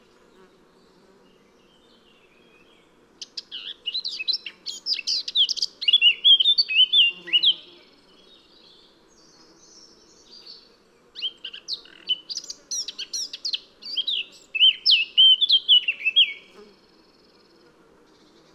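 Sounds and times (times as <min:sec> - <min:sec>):
Eurasian blackcap Sylvia atricapilla singing: 0:03.3 - 0:07.8, 0:11.2 - 0:16.5.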